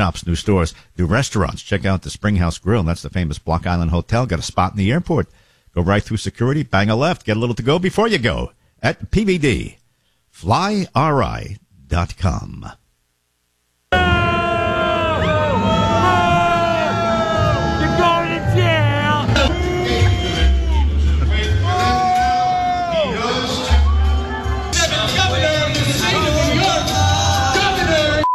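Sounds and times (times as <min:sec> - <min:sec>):
speech: 0:00.0 - 0:09.8, 0:10.4 - 0:12.8
parade crowd booing and cheering: 0:13.9 - 0:28.2.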